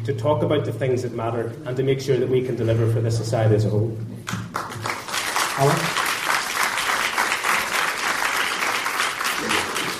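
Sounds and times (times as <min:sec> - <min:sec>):
speech: 0:00.0 - 0:04.4, 0:05.6 - 0:06.0
audience clapping: 0:04.2 - 0:09.9.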